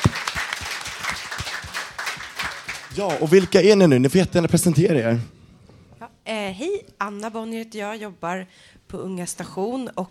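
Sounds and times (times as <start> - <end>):
small group applauding: 0.0 - 3.9
speech: 3.0 - 5.4, 6.3 - 10.0.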